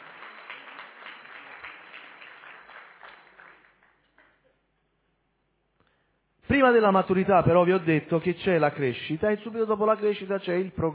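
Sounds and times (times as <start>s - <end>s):
audience applause: 0.0s - 4.4s
speech: 6.5s - 10.9s.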